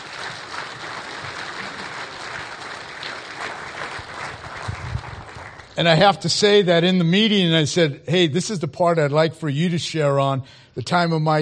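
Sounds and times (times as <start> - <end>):
audience applause: 0.0 - 6.0
speech: 5.8 - 11.4.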